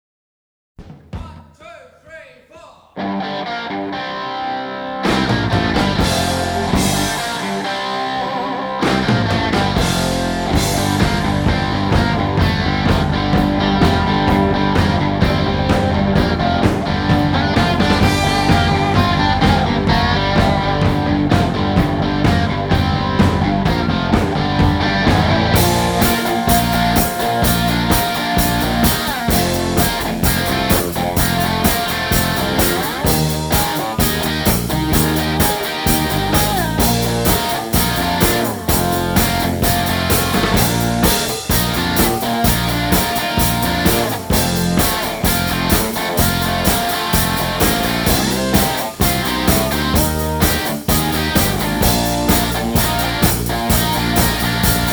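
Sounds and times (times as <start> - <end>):
instrumental music: 3.0 - 54.9.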